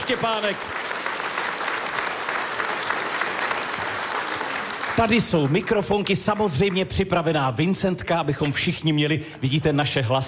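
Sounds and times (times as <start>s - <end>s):
audience applause in a historic hall: 0.0s - 7.0s
speech: 0.1s - 0.9s, 5.0s - 10.2s.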